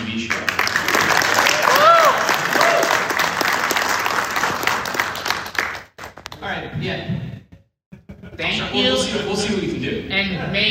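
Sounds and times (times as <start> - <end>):
audience applause: 0.1 - 6.3
speech: 6.8 - 7.3, 8.4 - 10.6.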